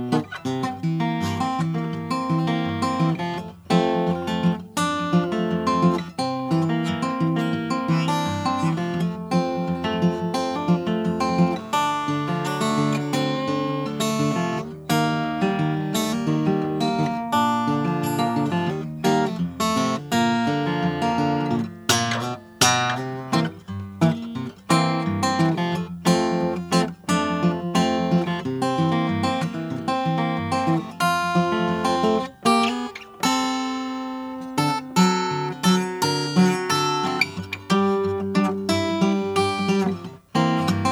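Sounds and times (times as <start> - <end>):
koa Hawaiian guitar: 0.0 - 40.9.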